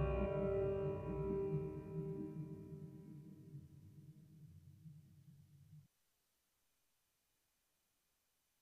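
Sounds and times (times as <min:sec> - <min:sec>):
Juno G internal synth patch imitating piano: 0:00.0 - 0:03.6.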